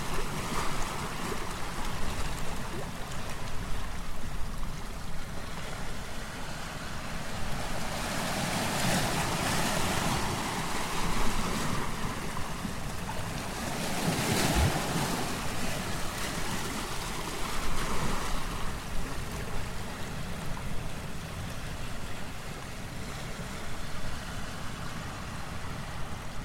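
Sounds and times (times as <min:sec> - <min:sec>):
waves over tide pool rocks at 3rd Beach in Olympic National Park: 0:00.0 - 0:26.4.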